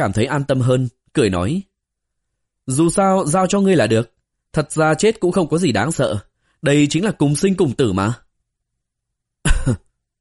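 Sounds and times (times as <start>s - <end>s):
speech: 0.0s - 1.7s, 2.7s - 8.2s, 9.6s - 9.8s
fit of dry coughing: 9.4s - 10.0s.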